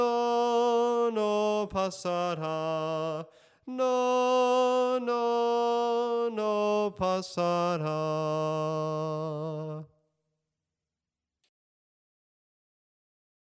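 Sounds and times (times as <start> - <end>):
soprano singing: 0.0 - 9.9.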